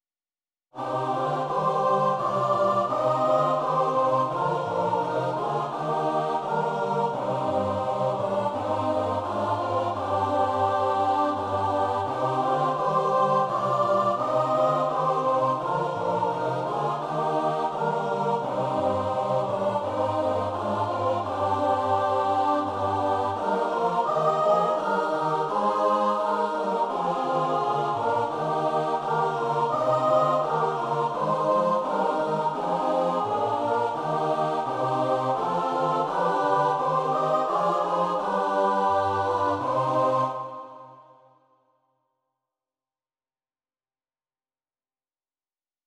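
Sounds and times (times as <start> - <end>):
choir singing: 0.8 - 41.3.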